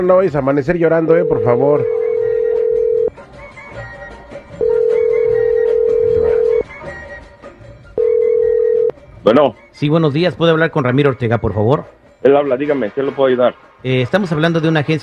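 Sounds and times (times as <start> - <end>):
speech: 0.0 - 2.0, 9.2 - 15.0
faint noise: 0.0 - 15.0
telephone ringback tone after dialing: 1.1 - 3.1, 4.6 - 6.6, 8.0 - 8.9.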